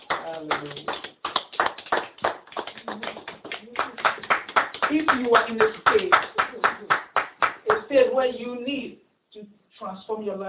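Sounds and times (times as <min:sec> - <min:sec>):
audience clapping: 0:00.0 - 0:07.9
speech: 0:00.4 - 0:01.1, 0:04.9 - 0:06.9, 0:07.9 - 0:09.0, 0:09.8 - 0:10.4.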